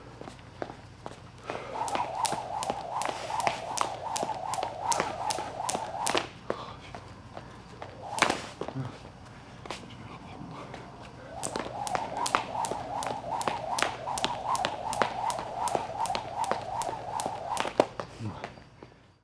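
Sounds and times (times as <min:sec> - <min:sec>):
skipping rope during gym training: 0:01.5 - 0:06.6, 0:07.8 - 0:08.7, 0:11.3 - 0:18.0.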